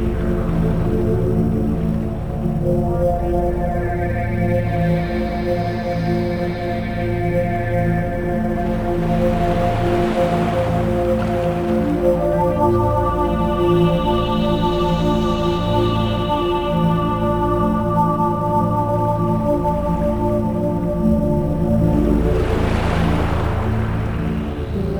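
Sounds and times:
ocean waves: 0:00.0 - 0:03.3, 0:07.8 - 0:18.4, 0:19.7 - 0:24.9
relaxation and meditation music: 0:00.0 - 0:24.9.

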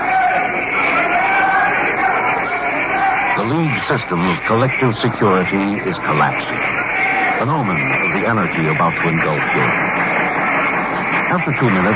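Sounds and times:
delegates and spectators applauding: 0:00.0 - 0:11.9
laughter: 0:00.0 - 0:11.9
murmuring voices: 0:00.0 - 0:11.9
speech: 0:03.5 - 0:06.8, 0:07.4 - 0:10.0, 0:11.3 - 0:11.9.

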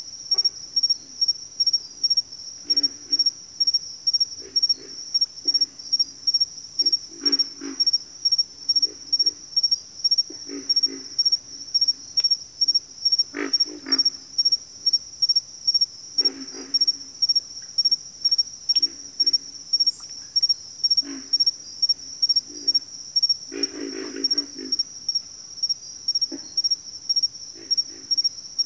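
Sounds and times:
high-pitched cricket chorus: 0:00.0 - 0:28.6
pig frog grunting calls: 0:02.6 - 0:03.4, 0:04.4 - 0:05.7, 0:06.8 - 0:08.0, 0:10.3 - 0:11.6, 0:13.2 - 0:14.5, 0:16.2 - 0:17.3, 0:18.7 - 0:21.5, 0:22.3 - 0:22.9, 0:23.5 - 0:25.0, 0:26.2 - 0:26.7, 0:27.5 - 0:28.6.

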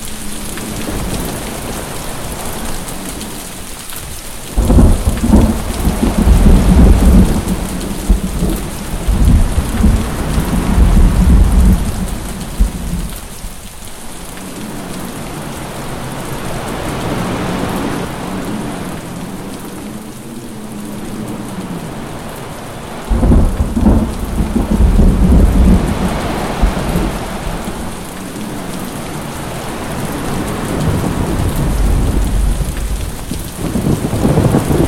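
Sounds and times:
heavy rain: 0:00.0 - 0:34.8
thunder: 0:04.6 - 0:13.2, 0:23.1 - 0:27.7, 0:30.8 - 0:34.8.

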